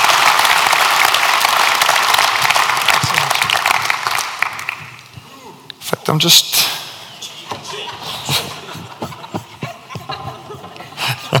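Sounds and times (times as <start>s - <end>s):
audience applause: 0.0s - 5.0s
speech: 6.2s - 6.5s
laughter: 7.4s - 11.3s.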